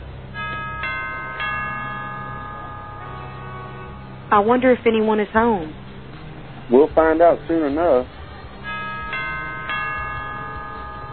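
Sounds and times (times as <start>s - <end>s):
doorbell ringing: 0.4s - 4.6s, 8.6s - 11.1s
speech: 4.3s - 5.8s, 6.7s - 8.2s.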